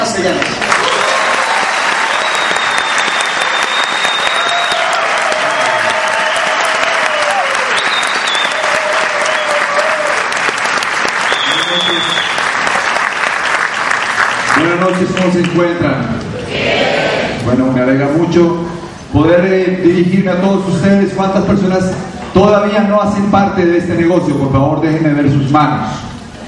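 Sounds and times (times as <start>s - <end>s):
speech: 0.2s - 0.6s, 15.0s - 16.2s, 17.5s - 26.1s
strong sustained audience applause: 0.3s - 15.6s
faint whoops: 0.8s - 10.3s.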